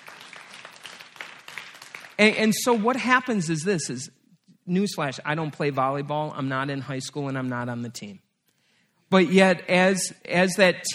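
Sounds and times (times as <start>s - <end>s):
audience applause: 0.0s - 2.2s
speech: 2.2s - 8.2s, 9.1s - 10.9s.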